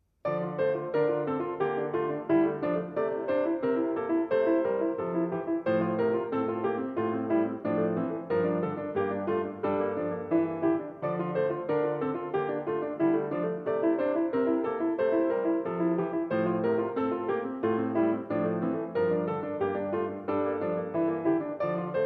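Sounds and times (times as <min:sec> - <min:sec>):
piano: 0:00.0 - 0:22.0.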